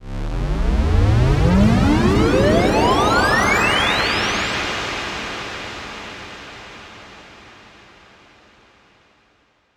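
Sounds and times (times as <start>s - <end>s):
uplifter riser: 0.1s - 4.7s.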